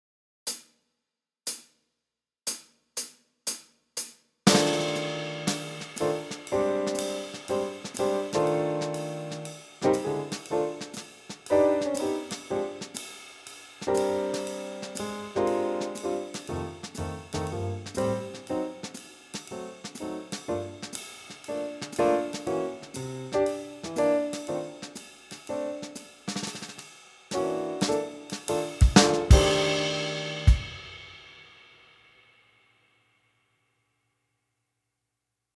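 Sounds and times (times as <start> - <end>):
blues music: 4.5 - 13.0, 13.8 - 26.1, 27.3 - 31.0.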